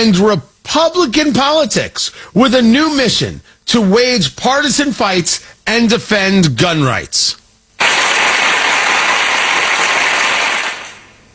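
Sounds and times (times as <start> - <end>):
speech: 0.0 - 7.4
applause: 7.8 - 11.2.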